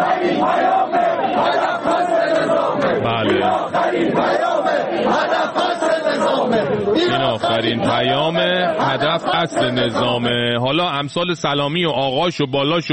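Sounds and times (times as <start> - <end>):
protesters shouting: 0.0 - 10.4
speech: 6.9 - 12.9.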